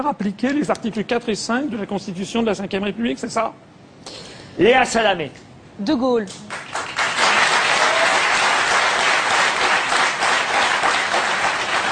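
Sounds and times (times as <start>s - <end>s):
speech: 0.0s - 6.6s
audience applause: 6.5s - 11.9s.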